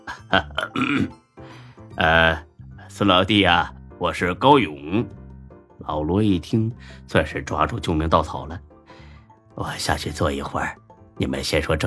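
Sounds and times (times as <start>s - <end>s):
voice imitating gruff coughs: 0.0s - 1.2s
speech: 0.3s - 1.2s, 2.0s - 5.2s, 5.8s - 8.7s, 9.6s - 11.8s.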